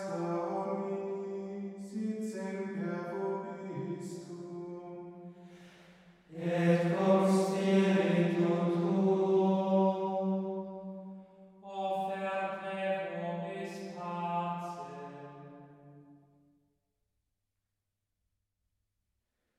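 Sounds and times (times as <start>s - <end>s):
Latin liturgical chant from the Mass: 0.0s - 5.7s, 6.3s - 15.8s.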